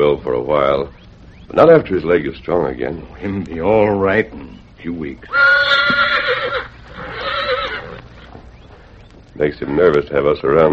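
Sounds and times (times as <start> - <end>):
speech: 0.0 - 6.6, 9.4 - 10.7
injured colt whinnying: 4.4 - 9.1.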